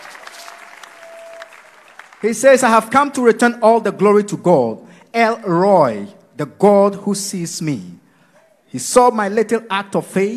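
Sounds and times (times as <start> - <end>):
audience clapping: 0.0 - 2.9
speech: 2.2 - 8.0, 8.7 - 10.3.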